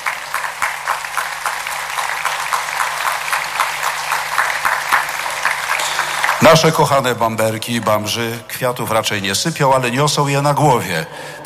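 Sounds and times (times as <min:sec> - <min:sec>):
applause: 0:00.0 - 0:07.1
speech: 0:06.5 - 0:11.4.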